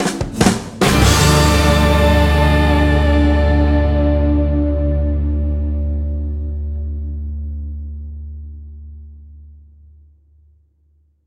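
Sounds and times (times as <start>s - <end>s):
victory music sting: 0.8s - 6.9s.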